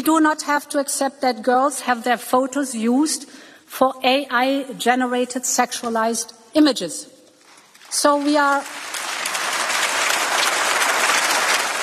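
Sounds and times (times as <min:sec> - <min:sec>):
speech: 0:00.0 - 0:07.1, 0:07.9 - 0:09.0
audience applause: 0:08.5 - 0:11.8.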